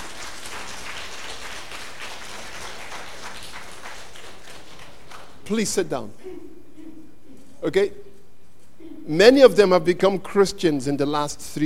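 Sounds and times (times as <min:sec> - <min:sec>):
audience clapping for standing guests: 0:00.0 - 0:05.7
speech: 0:05.5 - 0:06.5, 0:07.6 - 0:08.1, 0:09.1 - 0:11.6.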